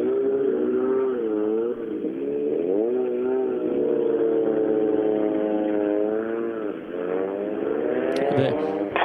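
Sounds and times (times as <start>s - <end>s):
racing car engines revving at finish: 0.0s - 9.0s.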